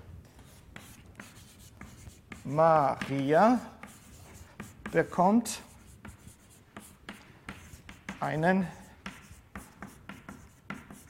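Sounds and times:
pen scratching on paper: 0.4 - 3.2, 3.8 - 5.1, 5.7 - 8.3, 9.0 - 11.0
speech: 2.4 - 3.7, 4.9 - 5.7, 8.2 - 8.8.

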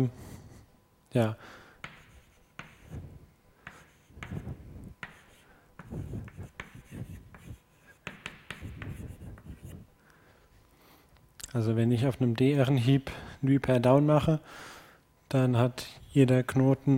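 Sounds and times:
speech: 0.0 - 0.2, 1.1 - 1.6, 11.6 - 14.7, 15.3 - 16.9
scratchy writing strokes: 1.8 - 9.9.

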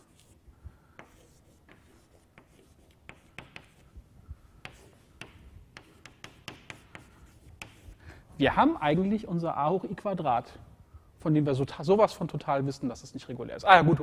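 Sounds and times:
lecturer writing on a board scratching: 0.0 - 0.4, 1.0 - 3.9, 4.6 - 8.0
speech: 8.4 - 14.0.

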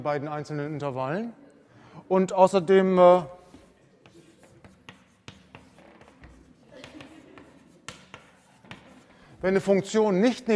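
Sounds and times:
speech: 0.0 - 1.4, 2.0 - 3.4, 9.4 - 10.5
writing on a board: 3.4 - 9.6.

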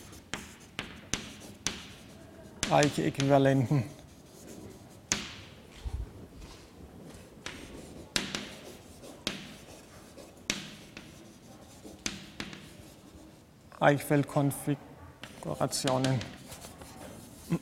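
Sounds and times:
pen or chalk scratching while sketching coordinate axes: 0.0 - 5.3, 7.4 - 13.4, 15.2 - 17.6
speech: 2.7 - 4.0, 13.8 - 16.4.

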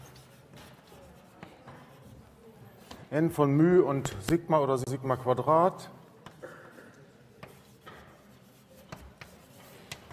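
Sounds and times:
formula for a normal distribution density written by hand: 0.0 - 2.3, 7.4 - 10.1
speech: 3.1 - 6.0.

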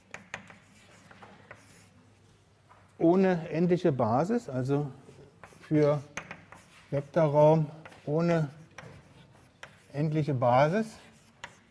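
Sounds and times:
scratchy writing strokes during a university mathematics lecture: 0.0 - 2.0, 5.1 - 11.6
speech: 3.0 - 5.0, 5.7 - 6.1, 6.9 - 8.6, 10.0 - 11.0.

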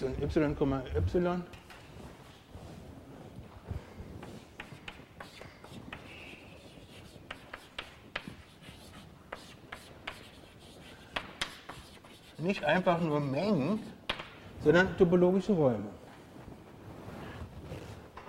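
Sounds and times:
speech: 0.0 - 1.6, 12.4 - 14.0, 14.6 - 16.0
writing on a board during a topology lecture: 4.1 - 13.0.

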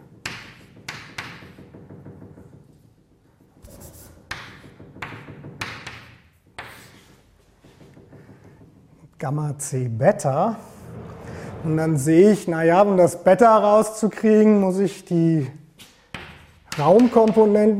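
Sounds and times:
pen strokes handwriting an equation: 3.6 - 4.3
speech: 9.2 - 10.7, 11.6 - 15.6, 16.8 - 17.7.

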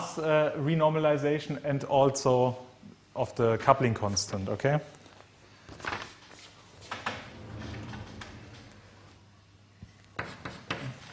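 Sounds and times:
speech: 0.2 - 5.0
chalk or marker writing on a board during a physics lecture: 10.2 - 11.1.

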